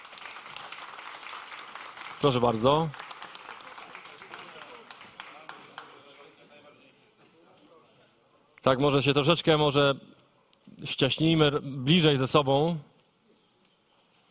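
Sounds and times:
audience applause: 0.0s - 6.4s
speech: 2.2s - 3.0s, 8.7s - 10.1s, 10.8s - 12.9s.

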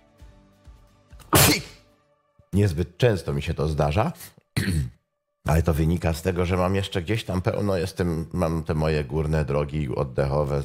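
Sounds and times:
person sneezing: 1.2s - 1.8s
speech: 2.6s - 10.6s.

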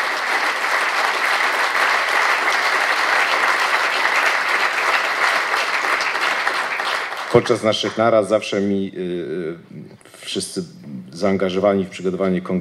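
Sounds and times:
audience applause: 0.0s - 8.0s
speech: 7.4s - 12.5s.

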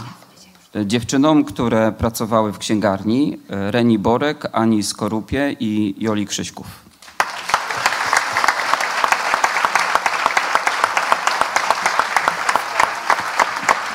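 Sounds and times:
speech: 0.7s - 6.9s
audience applause: 7.0s - 13.9s.

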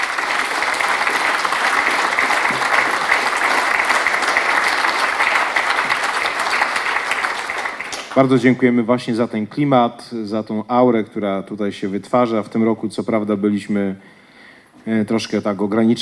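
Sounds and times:
audience applause: 0.0s - 8.6s
speech: 8.2s - 14.2s, 14.8s - 16.0s.

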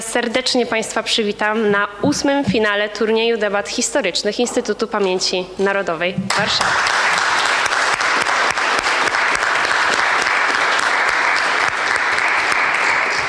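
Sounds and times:
speech: 0.2s - 7.1s
audience applause: 6.3s - 13.2s.

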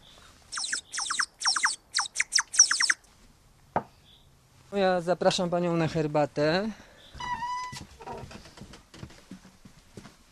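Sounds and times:
water-filled clay bird whistle warbling: 0.5s - 3.0s
speech: 4.7s - 6.8s.

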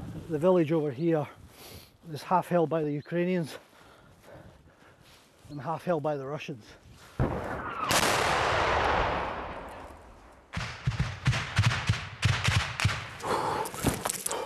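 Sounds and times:
speech: 0.3s - 1.4s, 2.0s - 3.7s, 5.5s - 7.6s
incoming Russian shell explosion, possibly tank fire, near trenches in Donbas: 7.2s - 13.2s
sharp irregular cracks and clatter: 7.2s - 14.3s.

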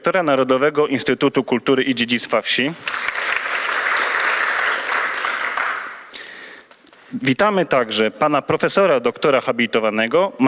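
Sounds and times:
speech: 0.0s - 3.2s, 7.1s - 10.4s
audience applause welcoming a director at a formal gathering: 2.8s - 6.2s.

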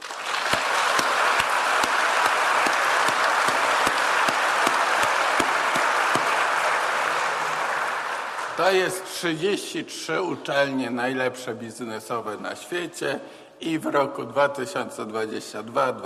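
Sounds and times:
audience applause: 0.0s - 9.1s
speech: 8.6s - 16.0s.

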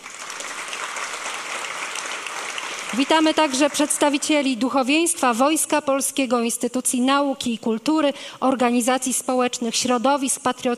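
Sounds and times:
audience applause at a formal ceremony welcoming diplomats and veterans: 0.0s - 4.3s
speech: 2.9s - 10.7s.

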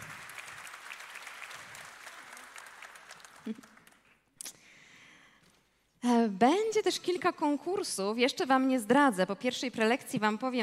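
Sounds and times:
audience clapping: 0.0s - 4.3s
speech: 3.4s - 3.7s, 6.2s - 10.6s.

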